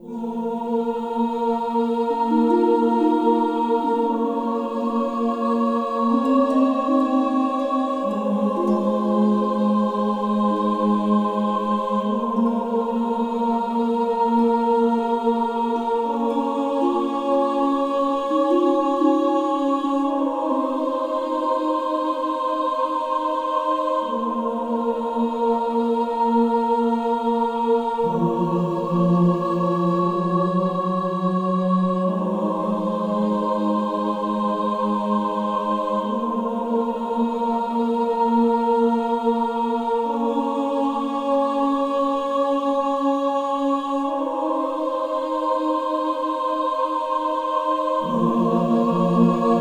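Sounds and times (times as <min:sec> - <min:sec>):
church music loop: 0:00.0 - 0:49.5.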